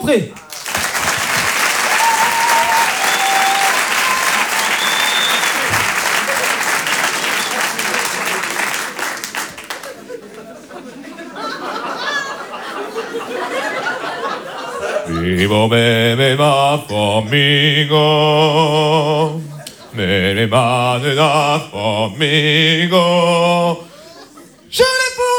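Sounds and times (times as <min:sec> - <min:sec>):
speech: 0:00.0 - 0:00.4, 0:15.2 - 0:19.4, 0:20.0 - 0:23.8
audience applause: 0:00.3 - 0:15.0
laughter: 0:00.3 - 0:16.8, 0:17.9 - 0:22.0, 0:22.8 - 0:25.2.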